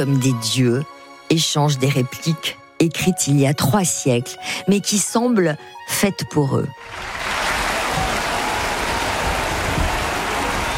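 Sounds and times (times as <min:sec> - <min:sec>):
speech: 0:00.0 - 0:07.3
theatre audience applauding: 0:06.8 - 0:10.7.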